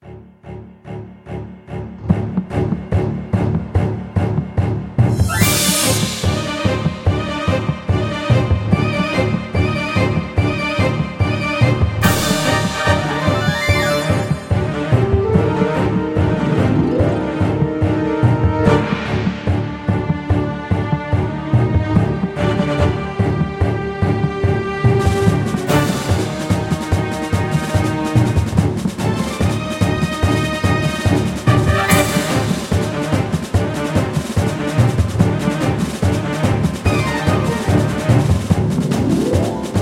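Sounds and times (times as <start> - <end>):
music: 0.0 - 39.8.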